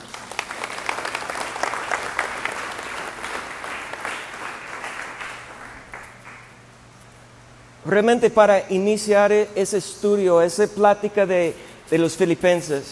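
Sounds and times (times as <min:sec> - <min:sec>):
audience applause: 0:00.0 - 0:06.6
speech: 0:07.9 - 0:12.9.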